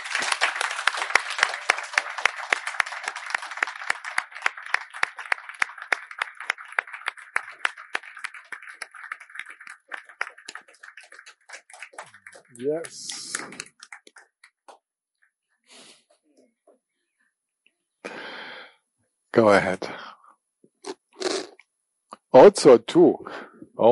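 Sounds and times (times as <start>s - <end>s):
audience applause: 0.0s - 14.8s
speech: 12.6s - 13.8s, 19.4s - 20.0s, 22.4s - 23.8s.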